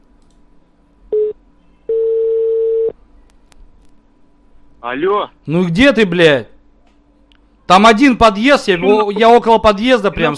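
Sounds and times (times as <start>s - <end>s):
longer steady mid-pitched telephone tone: 1.1s - 3.0s
telephone beep while placing a call: 1.2s - 2.9s
speech: 4.8s - 6.5s, 7.7s - 10.3s.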